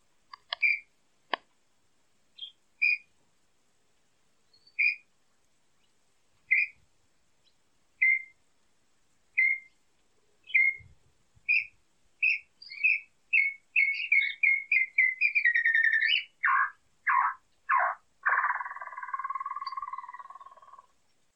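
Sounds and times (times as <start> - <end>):
Inhambu Chororo singing: 0.4 - 0.9, 2.4 - 3.1, 4.5 - 5.1, 6.5 - 6.8, 7.4 - 8.4, 9.4 - 9.8, 10.4 - 10.9, 11.5 - 21.0.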